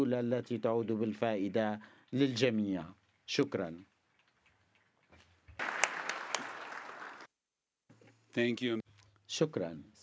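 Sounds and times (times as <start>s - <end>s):
speech: 0.0s - 3.9s, 8.4s - 10.0s
audience applause after an ambassador's speech at a formal meeting: 5.6s - 7.3s.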